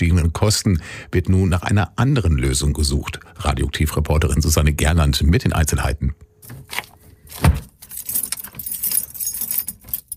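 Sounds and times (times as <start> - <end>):
speech: 0.0 - 6.8
metal keys jangling at a locked door: 7.6 - 10.1.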